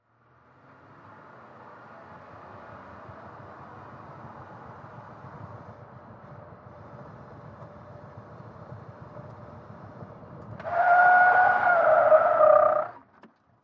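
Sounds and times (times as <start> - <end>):
SUV truck skidding in a 180 turn: 10.5 - 13.1.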